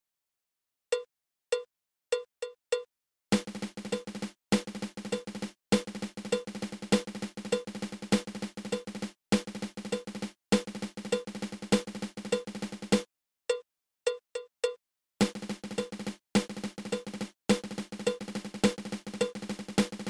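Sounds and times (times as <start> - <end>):
triple ratamacue drum rudiment: 3.3 - 13.1, 15.2 - 20.0.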